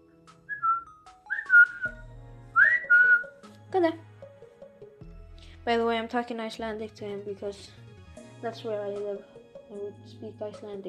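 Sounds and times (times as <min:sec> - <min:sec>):
pet bird whistling: 0:00.5 - 0:02.0, 0:02.6 - 0:03.3
speech: 0:03.8 - 0:04.1, 0:05.6 - 0:07.8, 0:08.4 - 0:10.8.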